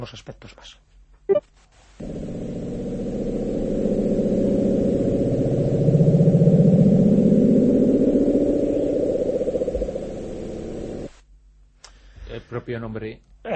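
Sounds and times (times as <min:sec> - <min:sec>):
speech: 0:00.0 - 0:02.2, 0:12.5 - 0:13.5
low-frequency underwater ocean rumble: 0:02.0 - 0:11.2.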